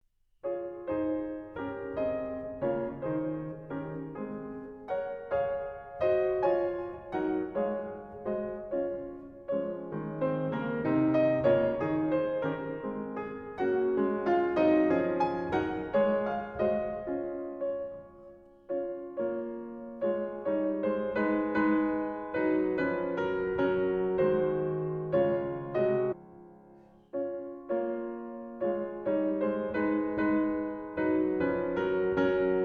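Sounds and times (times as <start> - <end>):
fast piano sonata: 0.0 - 32.6.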